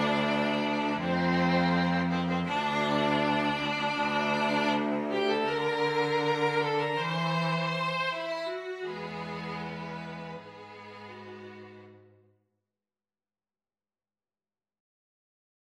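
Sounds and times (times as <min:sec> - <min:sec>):
string trio bass: 0:00.0 - 0:12.0.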